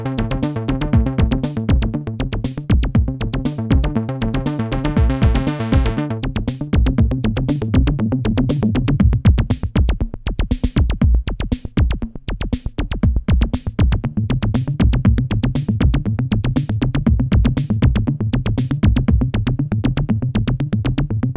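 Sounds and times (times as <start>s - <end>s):
Korg MS20 synthesizer sequence: 0.0s - 9.0s
drum samples: 0.0s - 21.2s.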